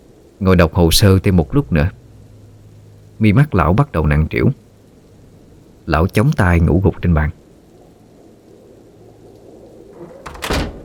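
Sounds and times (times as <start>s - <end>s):
low hum: 0.0s - 10.8s
strong wind and rain blowing in: 0.0s - 10.8s
speech: 0.4s - 2.0s, 3.2s - 4.6s, 5.9s - 7.4s
main door bursting open with a bang: 10.0s - 10.8s.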